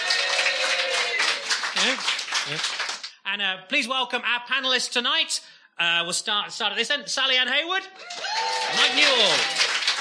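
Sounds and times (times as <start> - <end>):
people whooping: 0.0 - 1.4, 8.0 - 9.9
audience applause at a comedy panel show: 0.0 - 3.1, 8.0 - 9.9
speech: 1.8 - 2.8, 3.4 - 9.6.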